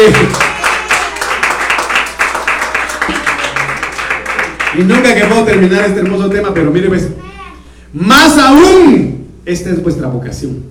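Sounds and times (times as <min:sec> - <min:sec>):
speech: 0:00.0 - 0:00.5, 0:04.8 - 0:07.3, 0:07.9 - 0:10.6
crowd clapping: 0:00.0 - 0:06.7.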